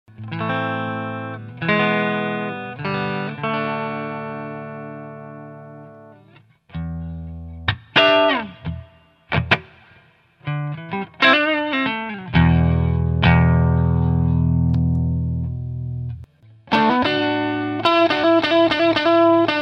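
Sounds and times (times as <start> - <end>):
viola through a 6L6 amplifier: 0.1 - 19.6.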